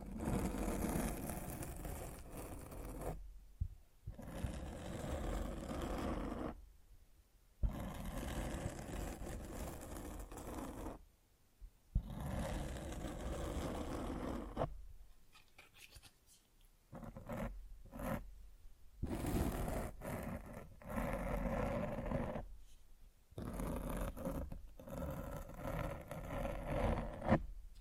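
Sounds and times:
scratching and rubbing against a microphone: 0:00.0 - 0:03.2, 0:04.1 - 0:06.6, 0:07.8 - 0:11.0, 0:12.2 - 0:14.7, 0:17.0 - 0:18.2, 0:19.0 - 0:22.4, 0:23.4 - 0:27.5.

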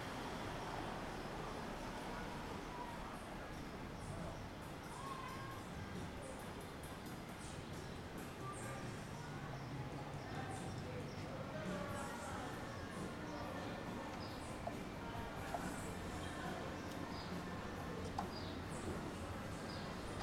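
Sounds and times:
street voices murmuring in Willemstad Curacao: 0:00.2 - 0:20.2
faint clicks: 0:18.0 - 0:18.5.

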